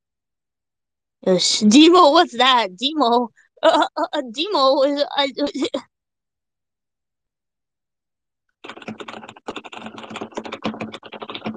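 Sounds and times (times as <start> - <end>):
speech: 1.2 - 5.9
typing on a computer keyboard: 8.6 - 11.5.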